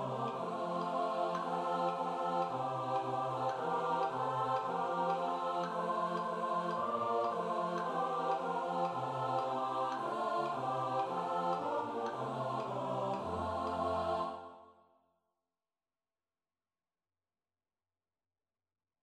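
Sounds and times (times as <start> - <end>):
SATB four-part choir singing: 0.0 - 14.8.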